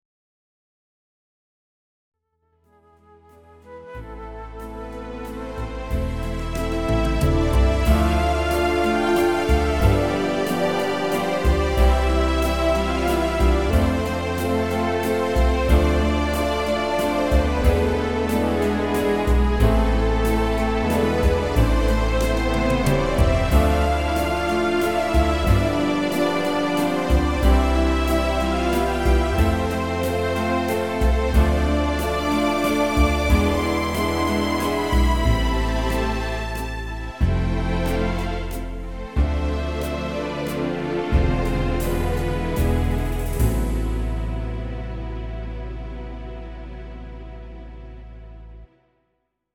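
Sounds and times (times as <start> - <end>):
waltz music: 2.7 - 48.7.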